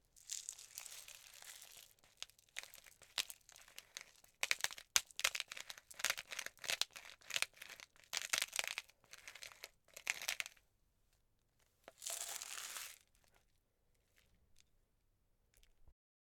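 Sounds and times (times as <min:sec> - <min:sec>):
pepper grinder grinding: 0:00.4 - 0:10.6, 0:12.0 - 0:13.0.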